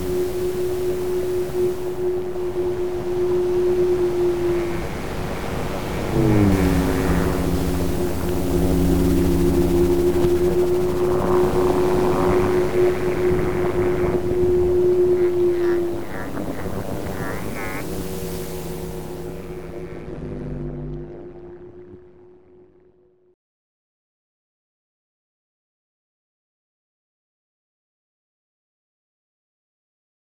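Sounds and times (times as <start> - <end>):
whale sounds with static: 0.0 - 23.0.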